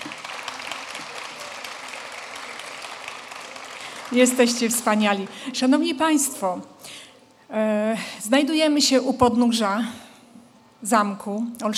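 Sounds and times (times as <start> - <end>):
audience applause: 0.0 - 5.6
speech: 4.1 - 10.0, 10.8 - 11.7.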